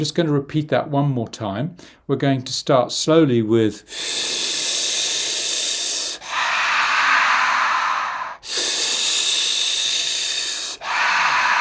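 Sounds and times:
speech: 0.0s - 4.6s
deep rhythmic breathing in and out as a breathing exercise: 3.9s - 11.5s.

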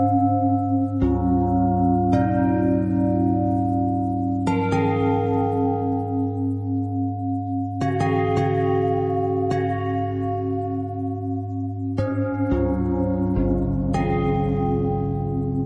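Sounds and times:
pentatonic bell melody: 0.0s - 15.6s.

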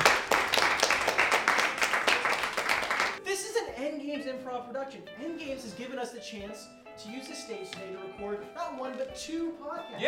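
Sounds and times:
audience applause: 0.0s - 3.2s
speech: 4.6s - 10.0s.

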